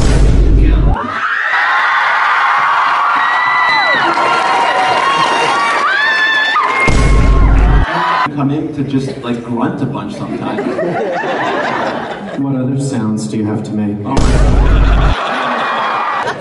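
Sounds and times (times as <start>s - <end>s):
audience cheering and whooping at a guest's entrance: 1.0s - 8.3s, 14.5s - 16.4s
laughter: 3.9s - 5.8s, 7.8s - 8.3s, 10.1s - 12.5s, 14.5s - 16.4s
speech: 8.7s - 15.4s.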